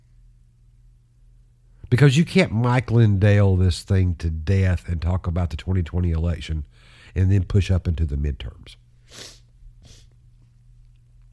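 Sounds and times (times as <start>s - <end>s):
speech: 1.9s - 9.4s
sniffling: 9.0s - 10.2s.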